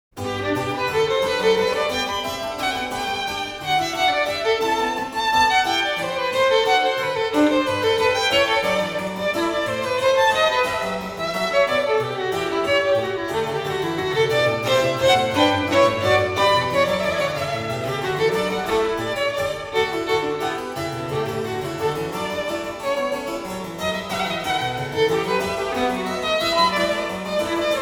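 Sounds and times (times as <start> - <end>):
violin sonata in G major: 0.1 - 27.7.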